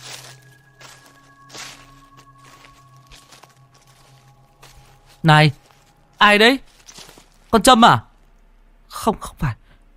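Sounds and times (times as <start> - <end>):
footsteps walking outside: 0.0 - 7.6
speech: 5.2 - 5.6, 6.2 - 6.7, 7.5 - 8.1, 9.0 - 9.6.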